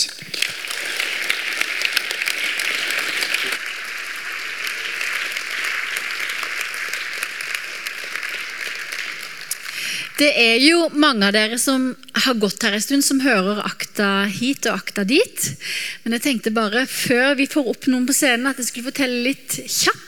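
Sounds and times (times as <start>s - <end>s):
crowd applauding: 0.0s - 10.2s
speech: 10.2s - 20.0s.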